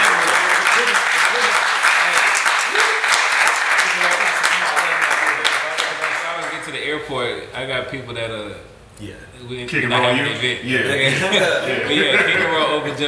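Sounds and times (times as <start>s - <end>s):
crowd applauding: 0.0s - 6.8s
speech: 7.6s - 13.0s
laughter: 10.9s - 13.0s.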